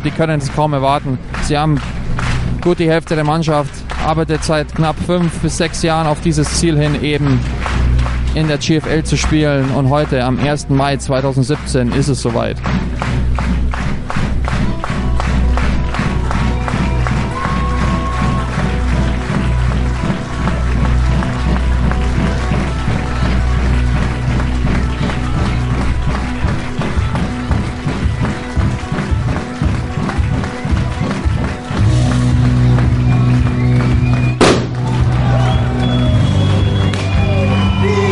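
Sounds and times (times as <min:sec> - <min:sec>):
speech: 0:00.0 - 0:02.0, 0:02.6 - 0:07.7, 0:08.4 - 0:14.2
large stadium crowd cheering as home team runs in: 0:00.0 - 0:38.1
rhythmic clapping: 0:00.0 - 0:38.1
sharp bangs: 0:34.4 - 0:34.8.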